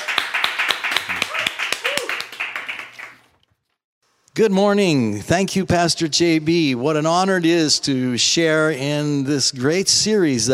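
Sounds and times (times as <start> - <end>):
audience applause welcoming a pastor at a church service: 0.0 - 3.3
speech: 4.4 - 10.5.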